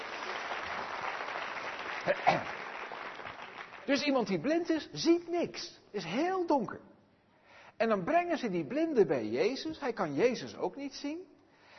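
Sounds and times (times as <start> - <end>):
applause: 0.0 - 4.6
speech: 2.0 - 2.6, 3.9 - 6.9, 7.8 - 11.3.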